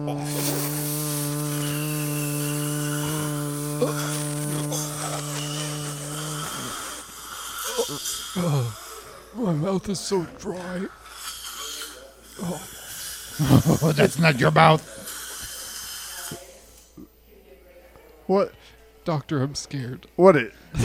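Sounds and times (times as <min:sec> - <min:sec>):
vacuum cleaner running: 0:00.2 - 0:07.8
speech: 0:03.8 - 0:04.2, 0:07.9 - 0:11.1, 0:12.4 - 0:12.8, 0:13.4 - 0:15.0, 0:18.3 - 0:20.8.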